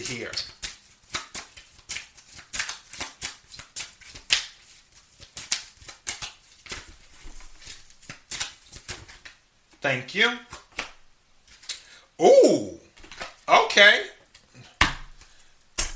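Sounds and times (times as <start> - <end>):
speech: 0.0 - 0.6, 9.8 - 10.5, 12.2 - 12.8, 13.8 - 14.2
tarot cards being shuffled and drawn: 0.0 - 9.4, 10.5 - 11.7, 13.0 - 13.5.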